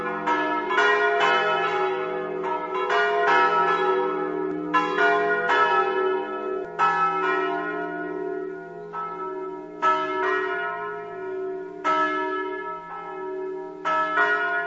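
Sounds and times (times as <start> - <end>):
bells: 0.0 - 14.6.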